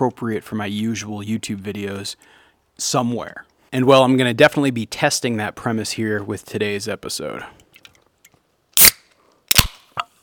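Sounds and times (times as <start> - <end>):
speech: 0.0 - 7.6
cracking open a drink can: 8.8 - 10.0.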